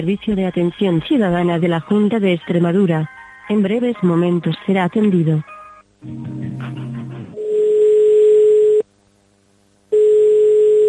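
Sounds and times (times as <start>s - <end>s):
speech: 0.0s - 6.8s
telephone line tone of unanswered call: 7.4s - 8.8s, 9.9s - 10.8s.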